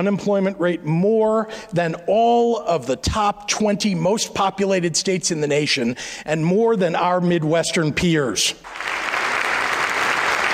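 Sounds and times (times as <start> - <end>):
speech: 0.0 - 9.2
Illinois legislature audience applauding in a hall: 8.6 - 10.5.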